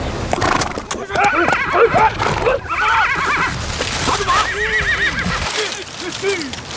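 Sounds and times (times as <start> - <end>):
busy steady noise: 0.0 - 6.7
horse neighing and whinnying, possibly a Chinese Zhangbei horse: 0.4 - 5.8.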